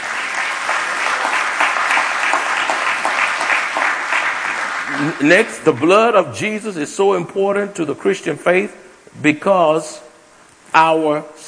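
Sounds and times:
audience applause: 0.0s - 5.3s
speech: 5.0s - 10.0s, 10.7s - 11.4s.

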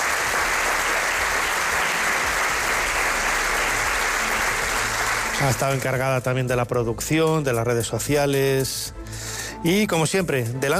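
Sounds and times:
audience applauding a production team member: 0.0s - 6.0s
speech: 5.4s - 10.7s.

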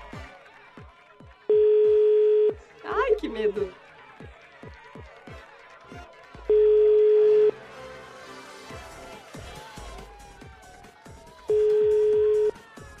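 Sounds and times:
speech: 0.1s - 0.9s, 3.2s - 4.4s
unanswered phone call ringback beeps: 1.5s - 2.6s, 6.5s - 7.5s, 11.5s - 12.5s.

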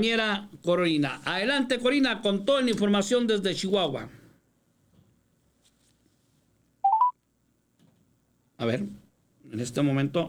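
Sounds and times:
speech: 0.0s - 4.2s, 8.6s - 10.2s
telephone touch-tone dialing beeps: 6.8s - 7.1s.

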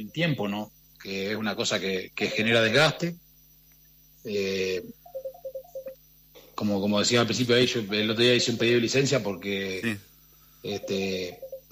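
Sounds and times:
speech: 0.0s - 3.2s, 4.2s - 5.0s, 6.6s - 11.7s
telephone ringing during a radio phone interview: 5.0s - 6.0s, 10.6s - 11.7s.

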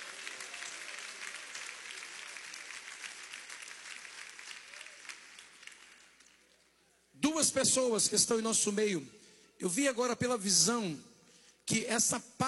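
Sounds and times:
applause: 0.0s - 6.9s
speech: 7.3s - 11.1s, 11.7s - 12.4s.

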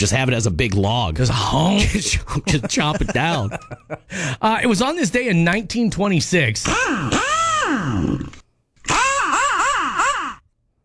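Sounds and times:
speech: 0.0s - 8.4s
laughter: 1.8s - 4.4s
impact wrench on car assembly line: 6.7s - 10.4s.

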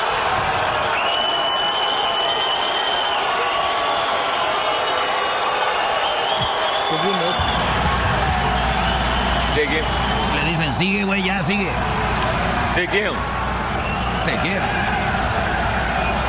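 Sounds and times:
stadium crowd cheering wildly: 0.0s - 16.2s
speech: 9.6s - 13.4s, 14.2s - 15.1s.

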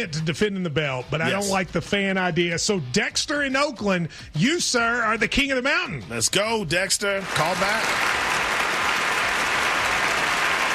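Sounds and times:
speech: 0.0s - 8.5s
applause: 7.2s - 10.7s.

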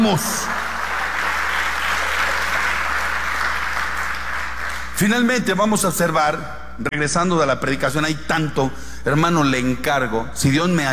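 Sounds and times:
speech: 0.0s - 0.6s, 5.0s - 10.9s
audience applause: 0.0s - 5.0s.

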